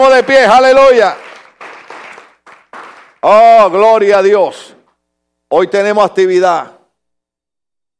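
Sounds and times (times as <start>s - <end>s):
speech: 0.0s - 1.2s, 3.2s - 4.7s, 5.5s - 6.8s
audience applauding: 0.0s - 3.5s.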